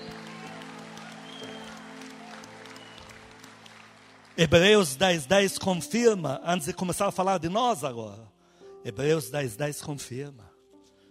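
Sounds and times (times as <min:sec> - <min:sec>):
audience clapping: 0:00.0 - 0:05.5
speech: 0:04.4 - 0:10.5.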